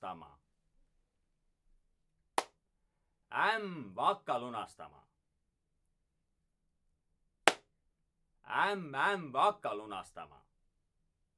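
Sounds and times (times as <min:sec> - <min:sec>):
speech: 0:03.5 - 0:05.1, 0:08.5 - 0:10.4
quiet hand clapping during an Estonian singing game: 0:07.5 - 0:07.7.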